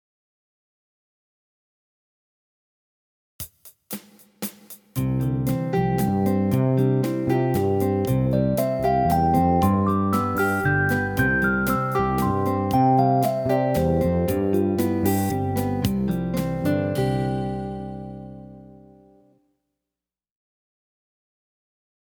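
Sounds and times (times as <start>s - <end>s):
major pentatonic study melody: 5.5s - 18.9s.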